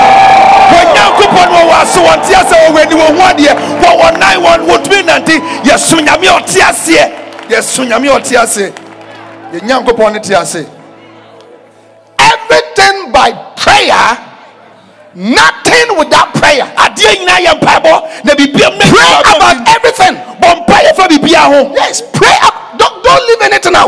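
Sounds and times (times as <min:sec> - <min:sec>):
cheers and whoops: 0:00.0 - 0:07.4
audience clapping: 0:00.0 - 0:10.1
speech: 0:02.1 - 0:04.9, 0:05.8 - 0:08.9, 0:09.5 - 0:10.8, 0:12.5 - 0:14.3, 0:15.2 - 0:23.8.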